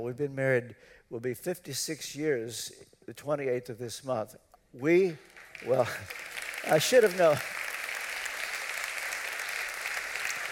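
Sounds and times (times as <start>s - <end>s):
speech: 0.0s - 7.6s
audience applause: 5.2s - 10.5s.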